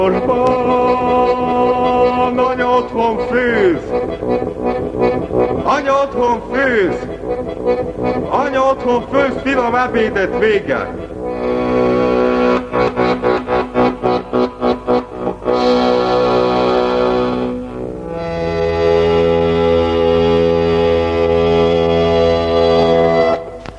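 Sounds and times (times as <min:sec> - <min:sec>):
speech: 0:00.0 - 0:00.8, 0:05.7 - 0:11.6
early recording of band music, heavily distorted, no vocals: 0:00.0 - 0:23.7.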